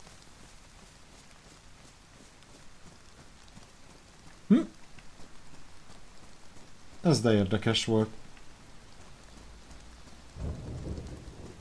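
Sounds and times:
rain-like hiss: 0.0 - 11.5
speech: 7.0 - 8.2
thunder from a lightning effect in a video game: 10.4 - 11.5.

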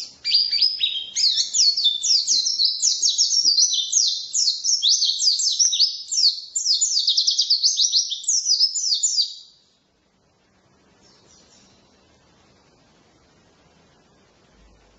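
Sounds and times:
white-eye twittering song: 0.0 - 9.8.

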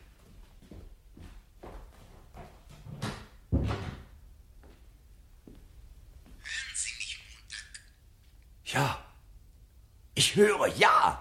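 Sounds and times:
soft footsteps: 0.0 - 3.4, 4.5 - 6.4
speech: 10.4 - 11.1.

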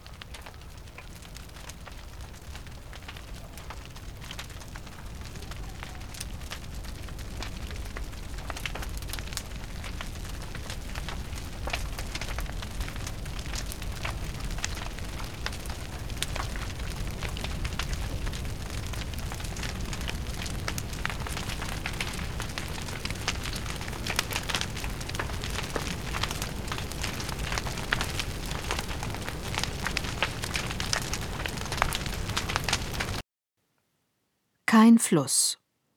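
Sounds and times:
crackling fire in a courtyard: 0.0 - 33.2
speech: 34.8 - 35.6.

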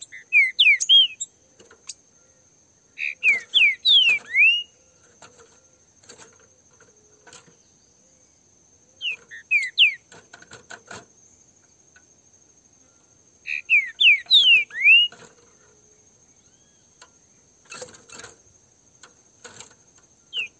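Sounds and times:
Green-winged saltator song of whistled slurs: 0.0 - 1.3, 3.0 - 4.8, 9.0 - 10.0, 13.5 - 15.2, 20.3 - 20.5.

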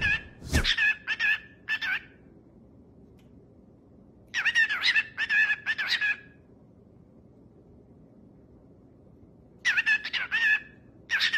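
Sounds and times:
cockatiel squawking: 0.0 - 2.1, 4.4 - 6.4, 9.6 - 11.3
low background hiss: 0.0 - 11.3.

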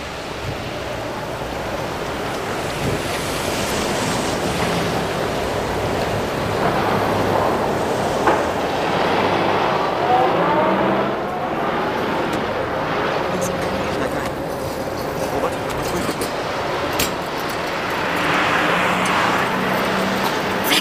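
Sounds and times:
car driving away: 0.0 - 20.8.

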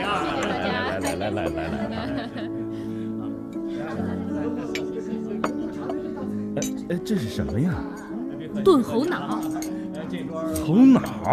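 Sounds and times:
glasses clinking in a toast at a dinner table: 0.0 - 2.0, 4.6 - 8.3, 9.1 - 11.3
laughter: 0.0 - 4.8
chatter of dinner guests: 0.0 - 11.3
speech: 1.2 - 2.4, 6.9 - 9.6, 10.3 - 11.3.

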